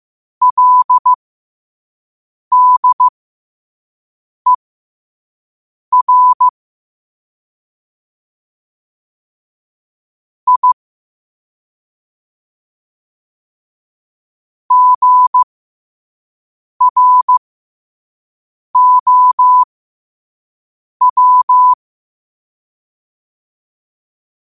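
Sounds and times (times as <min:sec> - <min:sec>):
morse code at 5 wpm: 0:00.4 - 0:01.2, 0:02.5 - 0:03.1, 0:05.9 - 0:06.5, 0:10.5 - 0:10.8, 0:14.7 - 0:15.4, 0:16.8 - 0:17.4, 0:18.8 - 0:19.7, 0:21.0 - 0:21.8.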